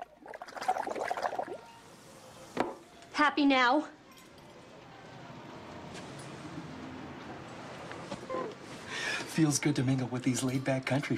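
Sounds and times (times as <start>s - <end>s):
bubbles blown through a straw into a cup of flat cola: 0.0s - 1.6s
speech: 3.2s - 4.0s, 9.4s - 11.1s.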